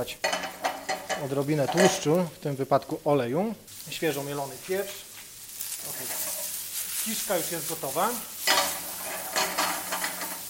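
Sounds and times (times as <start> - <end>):
speech: 0.0 - 0.3, 1.2 - 5.1, 7.0 - 8.6
button mushrooms sizzling in a frying pan: 0.0 - 10.4
utensil scraping a frying pan: 0.2 - 2.1, 5.6 - 10.4.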